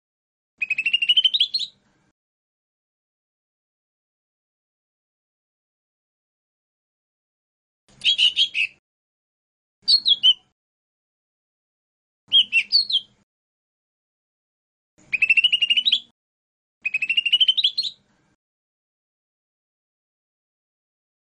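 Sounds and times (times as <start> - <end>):
lesser green leafbird whistled song: 0.6 - 1.8, 8.0 - 8.8, 9.8 - 10.5, 12.3 - 13.2, 15.0 - 16.1, 16.8 - 18.0.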